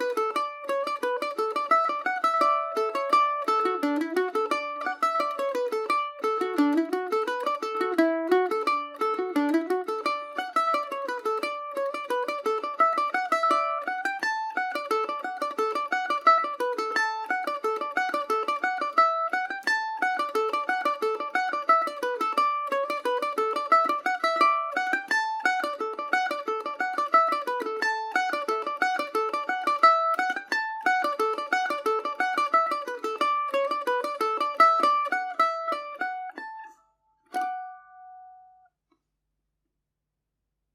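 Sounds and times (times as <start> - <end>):
Macaferri mandolin playing in D major: 0.0 - 38.7.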